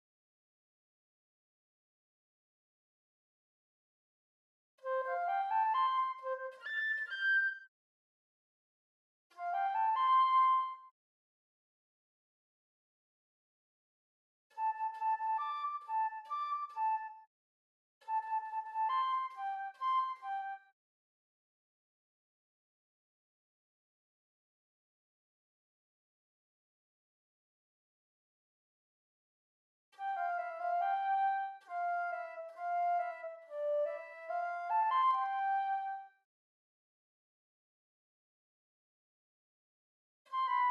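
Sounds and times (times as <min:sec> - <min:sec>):
flute: 0:04.8 - 0:07.7, 0:09.3 - 0:10.9, 0:14.5 - 0:17.3, 0:18.0 - 0:20.8, 0:30.0 - 0:36.2, 0:40.3 - 0:40.6.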